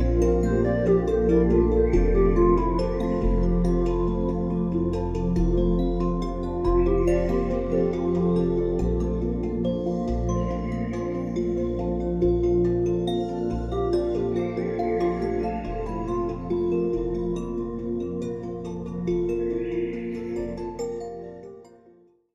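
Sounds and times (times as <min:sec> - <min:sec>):
3D relaxing meditation music: 0:00.0 - 0:22.3.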